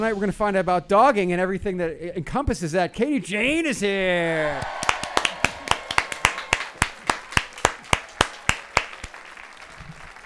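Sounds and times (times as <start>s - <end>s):
speech: 0.0s - 4.8s
studio audience clapping in a steady rhythmic beat: 3.4s - 10.2s.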